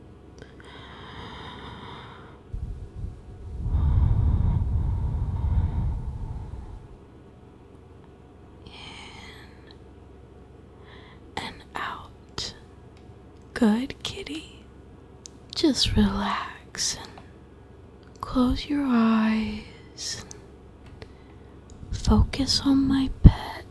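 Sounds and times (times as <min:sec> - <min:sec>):
slow deliberate breathing: 0:00.4 - 0:07.1, 0:10.8 - 0:11.3, 0:21.0 - 0:22.1
speech: 0:13.6 - 0:14.6, 0:15.6 - 0:17.0, 0:18.4 - 0:20.3, 0:22.1 - 0:23.5.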